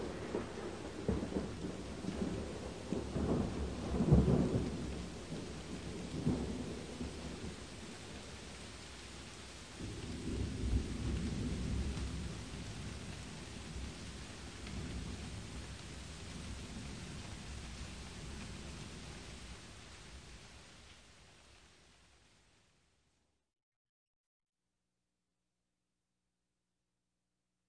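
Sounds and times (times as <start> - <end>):
thunder: 0.0 - 8.5, 9.7 - 19.2
rain: 0.0 - 23.2.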